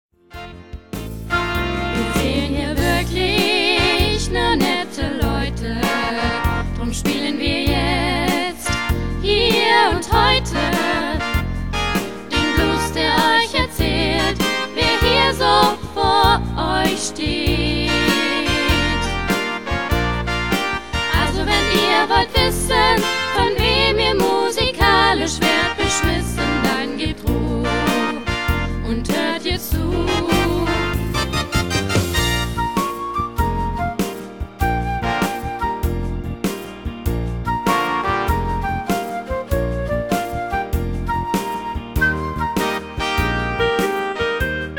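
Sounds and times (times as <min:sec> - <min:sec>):
blues music: 0:00.2 - 0:44.7.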